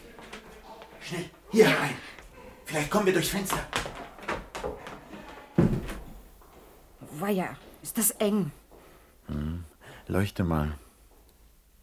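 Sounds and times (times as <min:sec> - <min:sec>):
speech: 0:01.1 - 0:02.1, 0:02.7 - 0:03.9, 0:07.2 - 0:08.6, 0:10.1 - 0:10.8
pantry door shutting with a heavy thud: 0:05.6 - 0:06.2.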